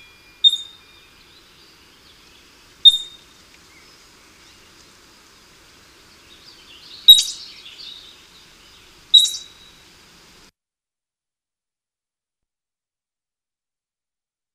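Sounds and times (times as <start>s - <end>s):
California ground squirrel calling: 0.4s - 0.8s, 2.1s - 4.9s, 6.0s - 9.9s.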